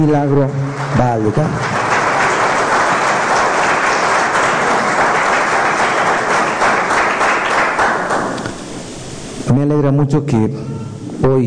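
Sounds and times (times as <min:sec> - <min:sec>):
speech: 0:00.0 - 0:01.9, 0:09.5 - 0:11.4
audience applause: 0:00.2 - 0:08.5.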